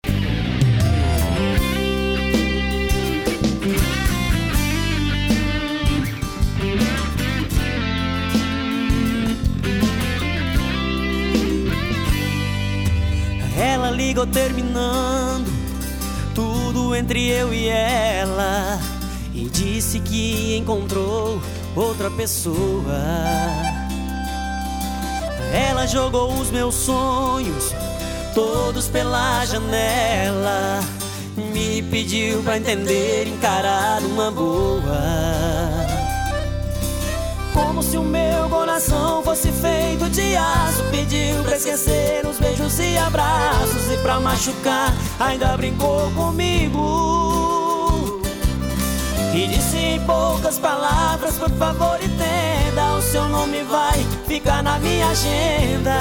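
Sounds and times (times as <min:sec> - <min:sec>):
sertanejo universitário music: 0:00.0 - 0:56.0.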